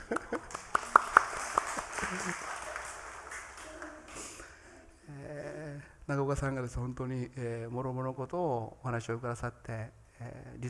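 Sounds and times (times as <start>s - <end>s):
audience applause: 0.0s - 4.4s
speech: 6.1s - 10.6s.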